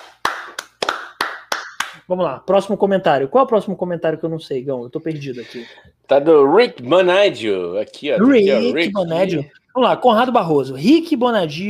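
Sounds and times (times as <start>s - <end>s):
hand clapping: 0.0s - 2.1s
speech: 2.1s - 11.6s.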